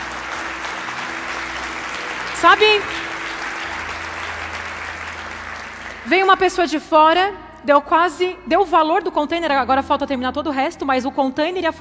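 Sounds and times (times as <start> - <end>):
audience applause: 0.0 - 6.4
speech: 2.4 - 3.0, 6.1 - 11.7.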